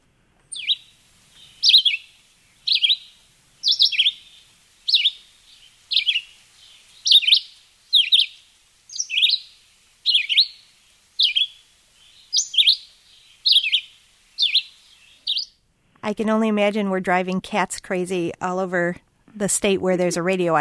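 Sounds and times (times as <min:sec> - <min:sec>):
red-eyed vireo song: 0:00.5 - 0:15.6
speech: 0:16.1 - 0:20.5.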